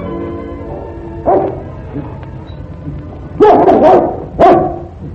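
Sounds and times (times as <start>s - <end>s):
dog barking: 0.7s - 1.7s, 3.4s - 4.9s.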